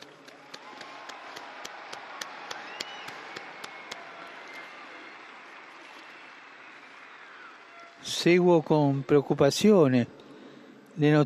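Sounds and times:
crowd applause: 0.0s - 9.8s
speech: 8.0s - 10.2s, 11.0s - 11.2s.

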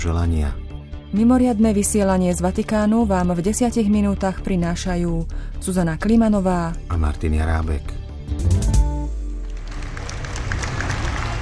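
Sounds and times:
speech: 0.0s - 8.6s
large crowd applauding in a square: 9.3s - 11.4s.

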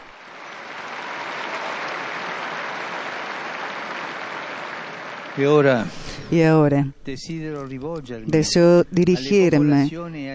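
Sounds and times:
crowd applause: 0.0s - 5.9s
speech: 5.4s - 10.3s.

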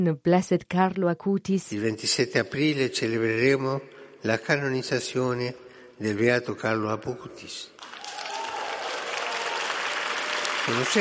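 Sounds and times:
speech: 0.0s - 8.1s, 10.7s - 11.0s
young people in an audience applauding: 7.8s - 11.0s.

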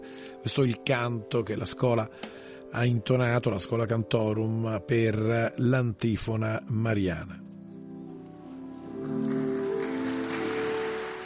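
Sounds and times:
speech: 0.4s - 7.5s
applause in basilica greeting the Pope: 8.8s - 11.2s.

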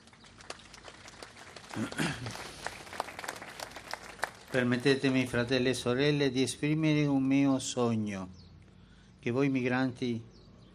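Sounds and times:
audience applause: 0.0s - 5.3s
speech: 1.8s - 2.6s, 4.5s - 8.4s, 9.2s - 10.3s.

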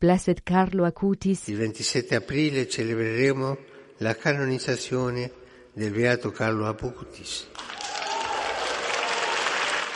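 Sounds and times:
speech: 0.0s - 7.8s
audience applause from young people: 7.5s - 9.9s.

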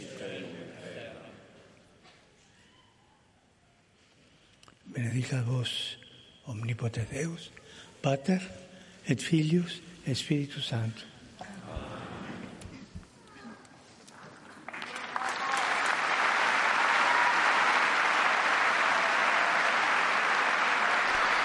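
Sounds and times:
speech: 5.1s - 11.1s
large audience applause in a hall: 14.3s - 21.4s.

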